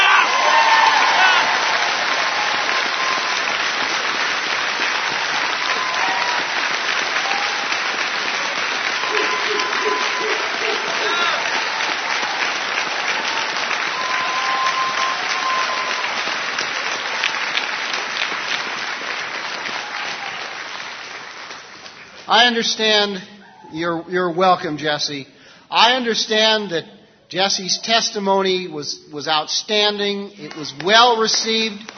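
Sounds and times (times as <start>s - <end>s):
cheering and whoops: 0.0s - 3.8s, 5.0s - 17.7s, 19.6s - 20.8s
audience applause for a sergeant major honoured for his service: 0.0s - 22.6s, 30.4s - 31.9s
speech: 22.5s - 31.9s.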